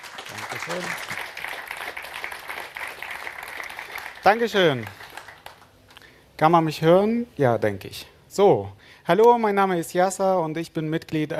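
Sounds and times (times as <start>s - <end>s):
audience applause: 0.0s - 5.7s
speech: 0.3s - 1.2s, 4.2s - 5.0s, 6.4s - 11.3s.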